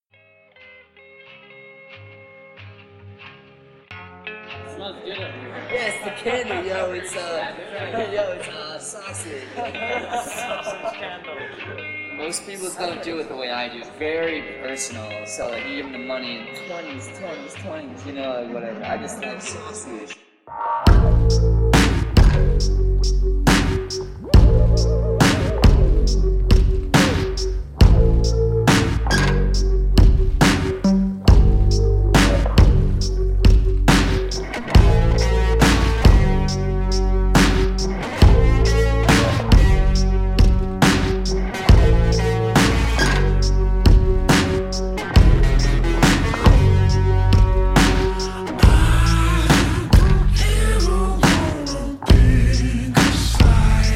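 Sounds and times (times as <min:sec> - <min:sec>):
laughter: 0:05.2 - 0:12.2, 0:18.4 - 0:19.8, 0:38.6 - 0:40.0
slowed reverb music: 0:20.8 - 0:53.9.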